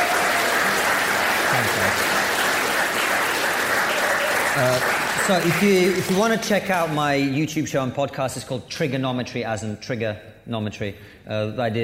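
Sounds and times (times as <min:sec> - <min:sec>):
crowd clapping: 0:00.0 - 0:07.3
speech: 0:04.6 - 0:11.8.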